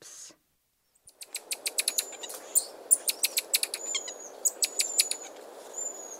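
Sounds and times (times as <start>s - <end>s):
buffy-headed marmoset sharp very high chirps: 1.0s - 6.1s.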